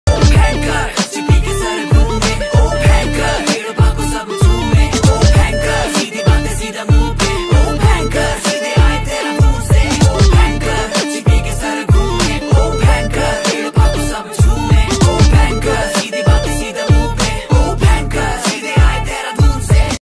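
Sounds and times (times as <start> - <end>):
Uttarakhandi ringtone: 0.1 - 20.0.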